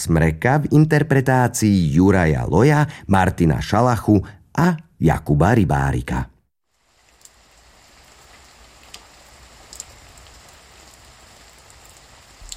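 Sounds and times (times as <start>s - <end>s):
speech: 0.0s - 6.3s
rain falling: 6.7s - 12.5s.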